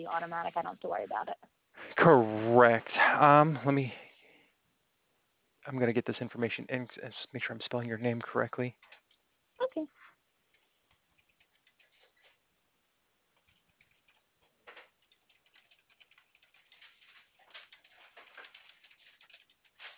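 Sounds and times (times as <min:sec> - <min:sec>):
speech: 0:00.0 - 0:04.0, 0:05.6 - 0:09.0, 0:09.7 - 0:10.0
typing on a computer keyboard: 0:10.5 - 0:12.2, 0:13.4 - 0:19.9.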